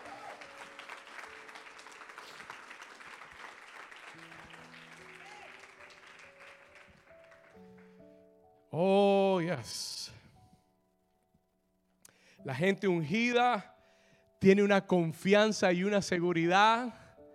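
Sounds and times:
audience applause: 0:00.0 - 0:08.0
speech: 0:08.8 - 0:09.9, 0:12.4 - 0:13.7, 0:14.4 - 0:17.0.

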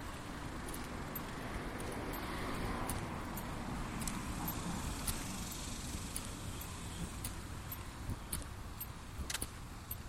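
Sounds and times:
road traffic rumble in the neighborhood: 0:00.0 - 0:10.0.

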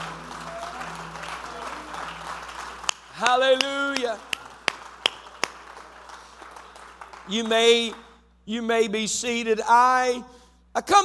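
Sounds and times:
audience clapping: 0:00.0 - 0:08.2
speech: 0:03.2 - 0:04.3, 0:07.3 - 0:11.0.

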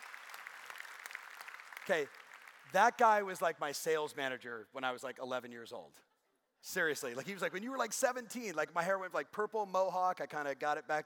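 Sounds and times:
audience applause: 0:00.0 - 0:02.8
speech: 0:01.9 - 0:11.0.

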